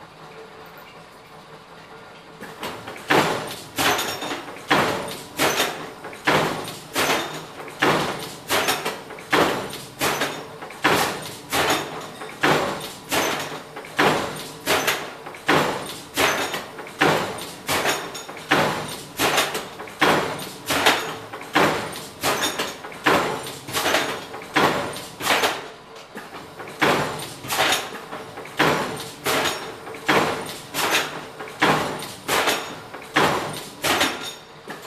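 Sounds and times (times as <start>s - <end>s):
industrial stamping press machine: 1.9s - 34.8s.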